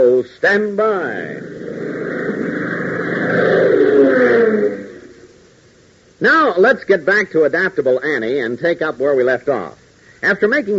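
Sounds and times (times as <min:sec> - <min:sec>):
speech: 0:00.0 - 0:01.6, 0:06.2 - 0:10.7
radio sound effect of strong wind buffeting an airplane: 0:01.3 - 0:05.4.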